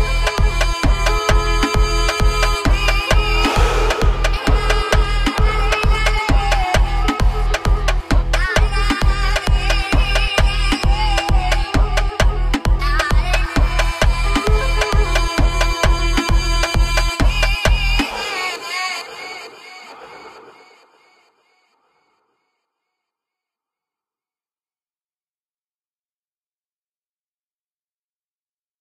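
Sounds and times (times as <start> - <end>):
Arabic beats: 0.0 - 20.9.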